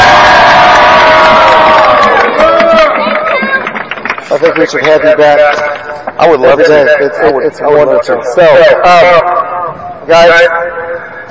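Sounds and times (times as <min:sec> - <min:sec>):
children applauding and cheering: 0:00.0 - 0:05.0
speech: 0:04.5 - 0:09.5, 0:10.1 - 0:10.8.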